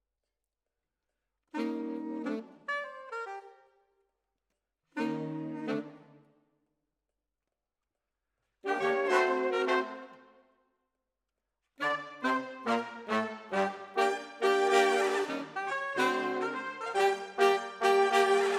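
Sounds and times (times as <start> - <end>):
saxophone: 1.5 - 3.9, 5.0 - 6.3, 8.6 - 10.4, 11.8 - 18.5.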